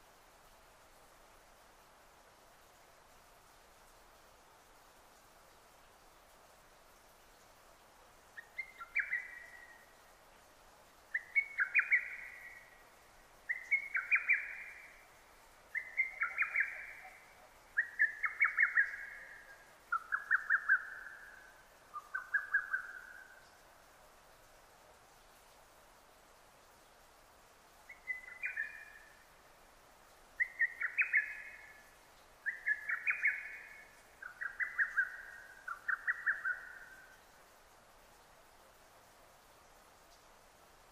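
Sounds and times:
lesser cuckoo song: 8.4s - 10.0s, 11.1s - 12.8s, 13.5s - 15.0s, 15.7s - 23.6s, 27.9s - 29.2s, 30.4s - 37.2s.

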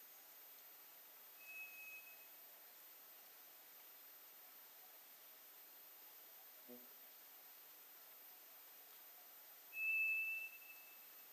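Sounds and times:
White's thrush song: 1.4s - 2.3s, 9.7s - 11.1s.

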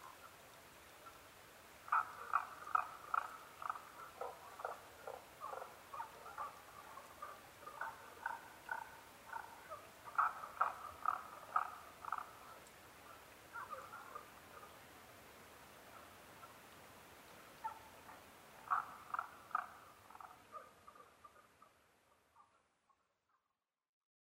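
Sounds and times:
Tago's brown frog rapid croaking: 1.9s - 14.7s, 17.6s - 21.7s.

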